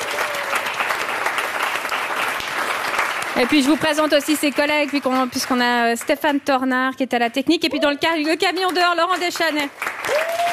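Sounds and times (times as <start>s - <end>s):
audience applause: 0.0s - 6.4s, 7.9s - 10.5s
speech: 3.4s - 10.5s.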